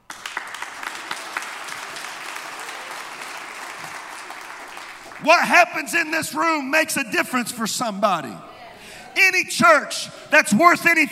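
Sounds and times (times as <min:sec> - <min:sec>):
hand clapping: 0:00.0 - 0:05.6
speech: 0:05.2 - 0:08.5, 0:09.2 - 0:11.0.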